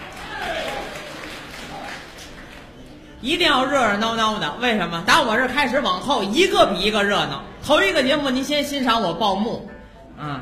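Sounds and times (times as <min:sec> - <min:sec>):
thin scattered clapping from a small audience: 0:00.0 - 0:03.0
speech: 0:03.2 - 0:10.4.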